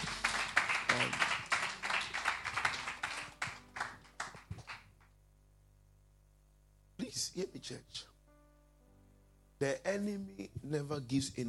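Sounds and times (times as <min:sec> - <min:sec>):
crowd clapping: 0:00.0 - 0:05.1
speech: 0:07.4 - 0:08.1, 0:09.6 - 0:11.4.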